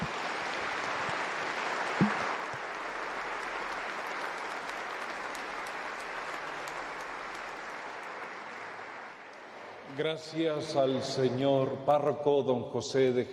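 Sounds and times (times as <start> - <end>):
audience applause: 0.0 - 10.0
speech: 10.0 - 13.3.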